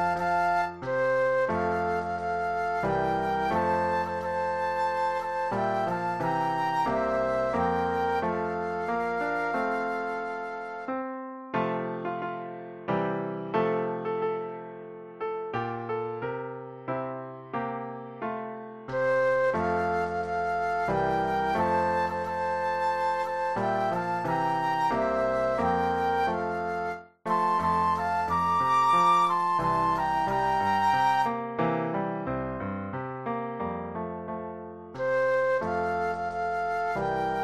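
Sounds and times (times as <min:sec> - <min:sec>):
Christmas flute duet: 0:00.0 - 0:12.0, 0:18.9 - 0:31.6, 0:35.0 - 0:37.4
Christmas piano: 0:00.0 - 0:37.4.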